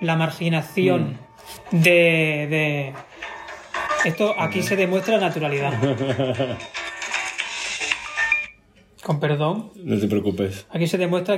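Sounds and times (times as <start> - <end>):
speech: 0.0 - 3.2, 4.0 - 6.8, 9.0 - 11.3
mobile phone ringing: 0.1 - 2.2, 2.8 - 8.6
laughter: 5.6 - 6.8.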